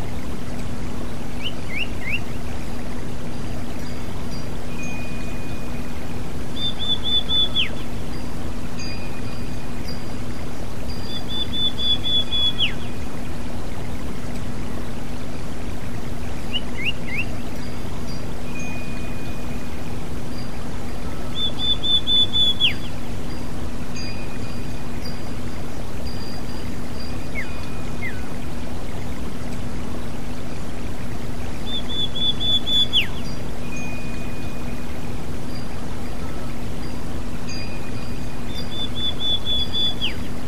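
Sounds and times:
water trickling: 0:00.0 - 0:40.4
kacer magpie robin singing: 0:01.3 - 0:02.4, 0:04.9 - 0:08.1, 0:09.0 - 0:13.1, 0:16.4 - 0:17.7, 0:20.5 - 0:23.2, 0:26.2 - 0:28.6, 0:31.5 - 0:35.8, 0:37.7 - 0:40.4.

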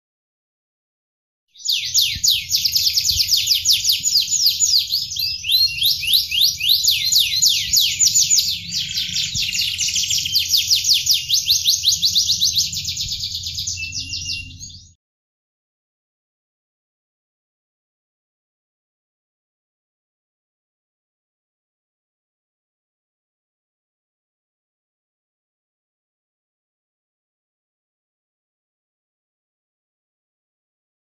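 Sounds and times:
canary: 0:01.6 - 0:15.0.

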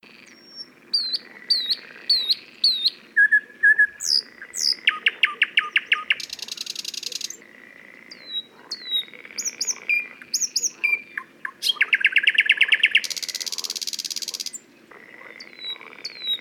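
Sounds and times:
Thrush nightingale song: 0:00.0 - 0:16.3.

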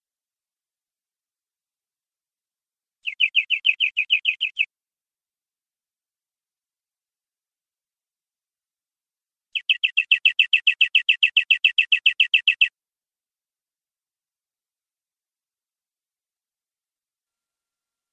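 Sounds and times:
canary singing long-duration rolling trill: 0:03.0 - 0:04.7, 0:09.6 - 0:12.7.

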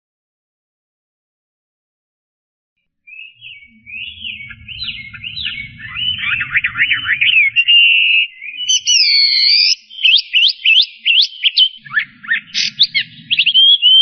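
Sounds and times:
Chinese hwamei singing loud rapid whistled phrases: 0:03.1 - 0:14.0.

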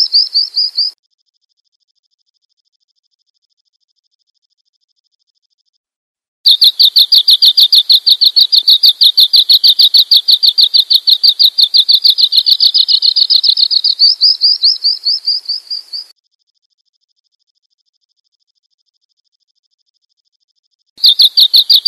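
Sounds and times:
bird chirping: 0:00.0 - 0:01.0, 0:06.5 - 0:16.1, 0:21.0 - 0:21.8.

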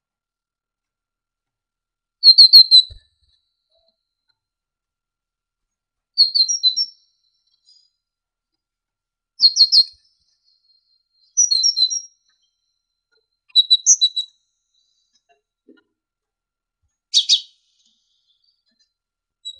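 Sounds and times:
Great tit singing high whistled notes: 0:02.2 - 0:03.0, 0:06.2 - 0:07.8, 0:09.4 - 0:12.6, 0:13.5 - 0:14.3, 0:17.1 - 0:17.6.

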